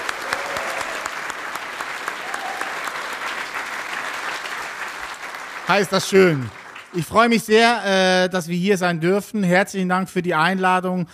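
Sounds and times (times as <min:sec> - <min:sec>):
crowd applause: 0:00.0 - 0:07.4
speech: 0:05.7 - 0:11.1.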